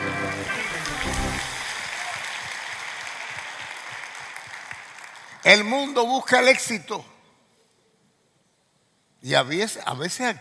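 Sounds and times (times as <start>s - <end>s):
audience applause: 0.0s - 5.6s
speech: 5.5s - 7.1s, 9.2s - 10.3s.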